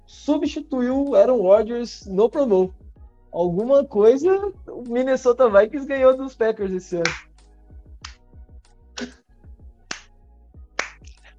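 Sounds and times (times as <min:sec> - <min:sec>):
low musical backing with falling bass tones: 0:00.0 - 0:11.3
speech: 0:00.1 - 0:07.3
sharp hand claps: 0:07.0 - 0:07.4, 0:09.9 - 0:10.1, 0:10.8 - 0:11.3.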